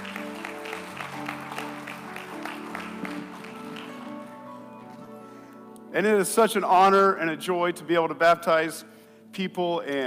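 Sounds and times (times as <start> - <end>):
audience applause: 0.0 - 5.0
speech: 6.0 - 10.0.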